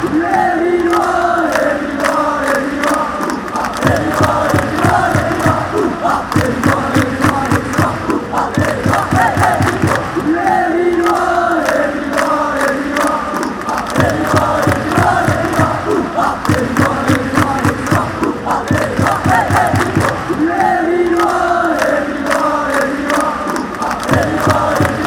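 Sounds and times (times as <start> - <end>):
people chanting oohhhh ahhhh: 0.0 - 25.0.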